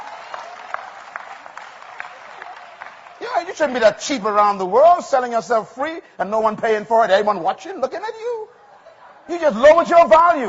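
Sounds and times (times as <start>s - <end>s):
audience applauding during a sermon: 0.0s - 4.1s
speech: 3.3s - 8.5s, 9.3s - 10.4s.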